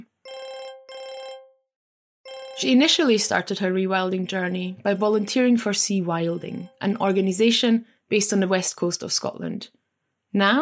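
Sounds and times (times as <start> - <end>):
electronic phone ringing tone: 0.2 - 3.5, 4.2 - 6.9
speech: 2.6 - 10.6.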